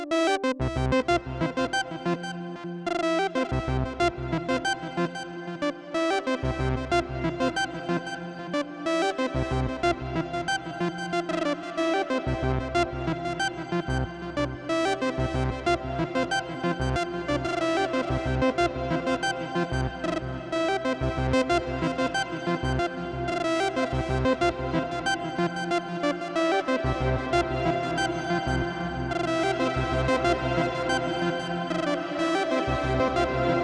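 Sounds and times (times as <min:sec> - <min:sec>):
synthesizer with hall reverb: 0:00.1 - 0:33.6.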